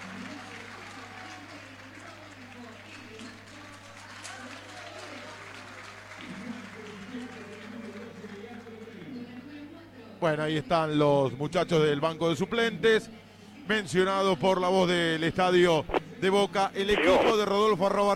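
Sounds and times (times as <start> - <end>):
stadium crowd applauding: 0.0 - 9.2
speech: 10.2 - 18.1.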